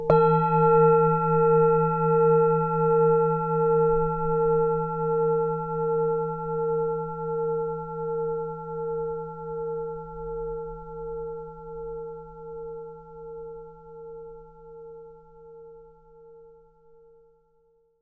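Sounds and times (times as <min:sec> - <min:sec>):
Tibetan singing bowl for meditation: 0:00.0 - 0:17.4.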